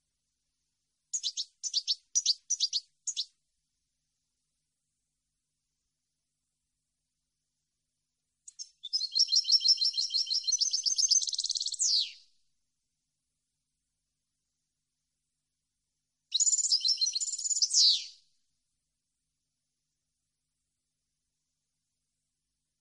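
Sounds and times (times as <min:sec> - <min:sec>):
European goldfinch singing: 0:01.1 - 0:03.3, 0:08.5 - 0:12.2, 0:16.3 - 0:18.2.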